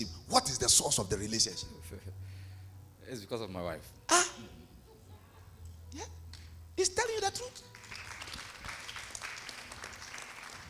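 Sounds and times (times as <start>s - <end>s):
speech: 0.0s - 2.2s, 3.1s - 4.5s, 5.9s - 6.2s, 6.8s - 7.7s
audience clapping: 7.4s - 10.6s.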